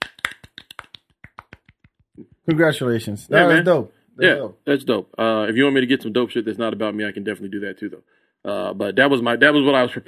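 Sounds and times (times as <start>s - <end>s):
soft golf clap: 0.0s - 2.5s
speech: 2.2s - 10.0s.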